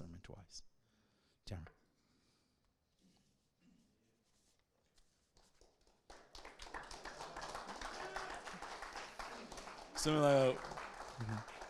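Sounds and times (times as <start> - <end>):
speech: 0.3 - 0.7, 1.5 - 1.8, 10.0 - 11.5
audience clapping: 5.4 - 11.6.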